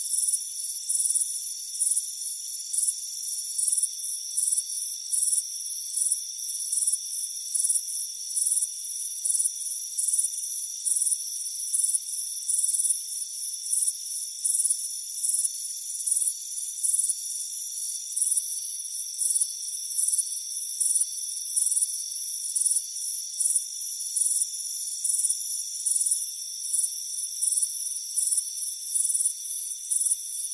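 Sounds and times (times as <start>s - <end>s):
crickets chirping: 0.0s - 30.5s.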